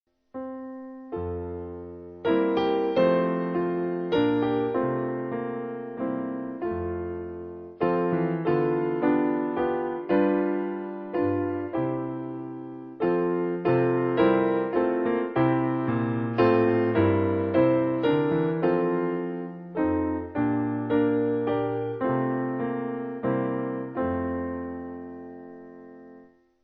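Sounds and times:
piano backing music for churches: 0.3 - 26.6.

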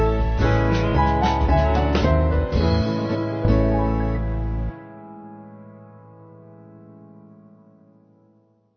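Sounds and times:
church band backing music: 0.0 - 4.8.

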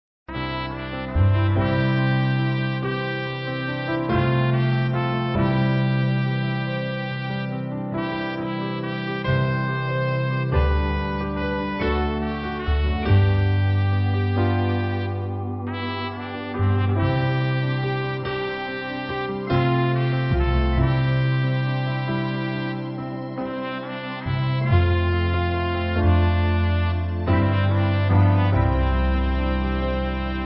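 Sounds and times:
band playing a hymn: 0.4 - 30.4.

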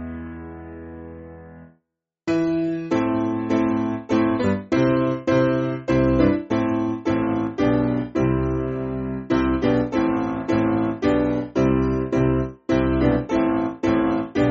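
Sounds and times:
piano: 0.0 - 1.7, 2.3 - 14.4.

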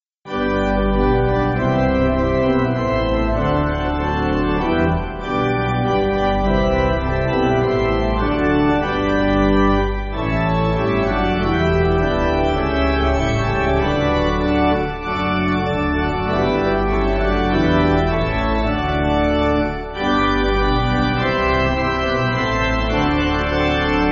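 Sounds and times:
pipe organ backing music: 0.3 - 24.1.

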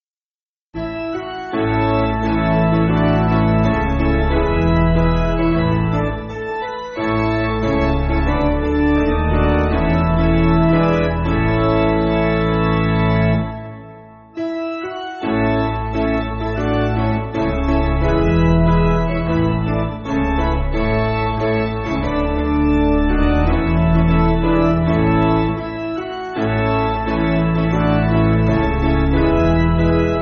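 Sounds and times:
piano backing music: 0.8 - 30.2.

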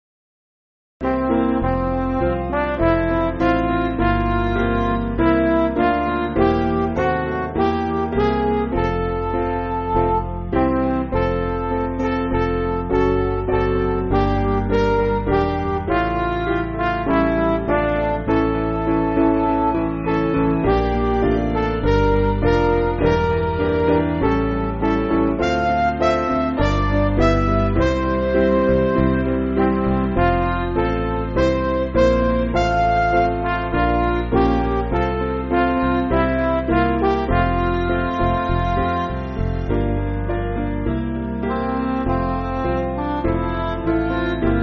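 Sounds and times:
MIDI church backing music: 1.0 - 44.6.

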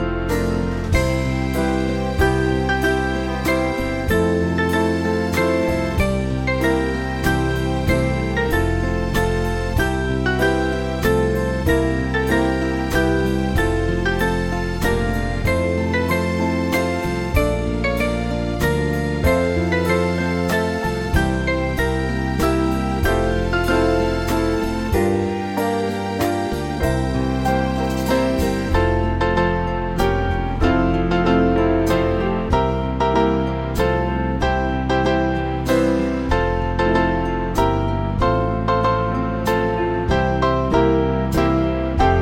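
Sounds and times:
band playing church music: 0.2 - 42.2.

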